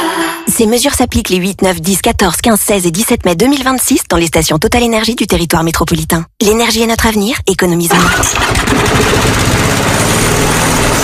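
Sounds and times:
speech: 0:00.6 - 0:11.0
lawn mower engine running: 0:08.0 - 0:11.0.

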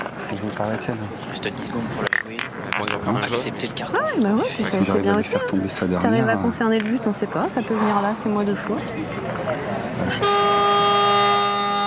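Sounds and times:
murmured voices: 0:00.0 - 0:10.8
speech: 0:00.3 - 0:10.4.

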